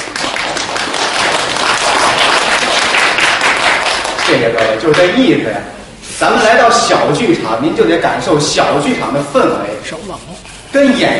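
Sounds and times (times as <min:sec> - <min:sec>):
audience applause: 0:00.0 - 0:04.8
speech: 0:04.4 - 0:11.1.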